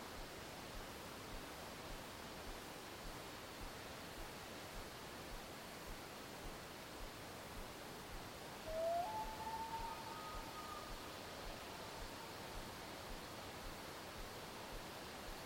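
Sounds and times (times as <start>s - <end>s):
wind in a forest: 0.0s - 15.4s
deer calling in a forest: 8.7s - 11.4s.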